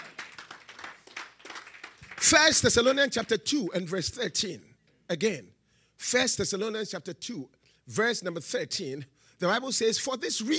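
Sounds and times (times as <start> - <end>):
congregation clapping at a church anointing service: 0.0 - 3.5
speech: 2.2 - 10.5.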